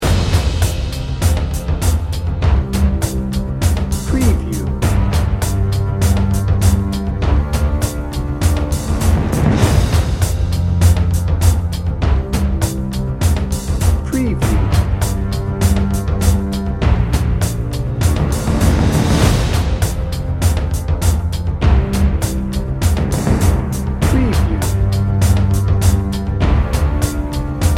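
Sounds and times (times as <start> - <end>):
adventure drum and bass music: 0.0 - 27.7.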